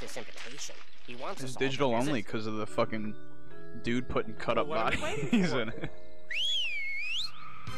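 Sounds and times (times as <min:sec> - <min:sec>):
speech: 0:00.2 - 0:06.5
laughter: 0:04.8 - 0:06.0
person whistling: 0:06.3 - 0:07.4.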